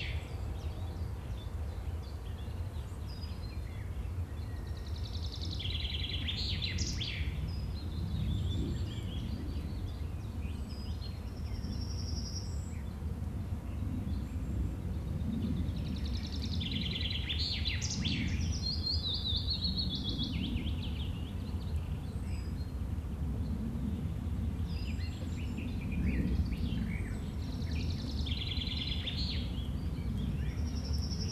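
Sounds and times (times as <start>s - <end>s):
nature ambience on a field: 0.0s - 31.3s
airplane: 6.8s - 17.1s, 19.7s - 31.3s.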